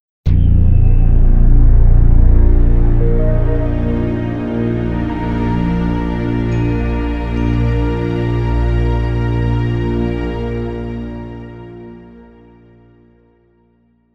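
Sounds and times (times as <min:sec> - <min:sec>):
nap jingle: 0:00.4 - 0:09.6.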